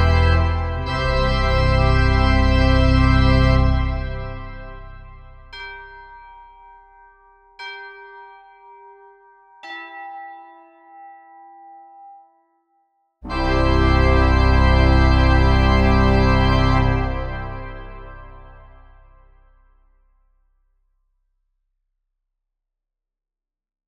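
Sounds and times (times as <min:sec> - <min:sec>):
New Year fanfare: 0:00.0 - 0:05.4, 0:13.2 - 0:19.3.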